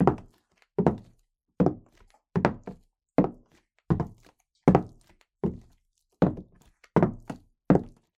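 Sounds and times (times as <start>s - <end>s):
woman walking slowly in stiletto heels on wood floor: 0.0s - 8.1s.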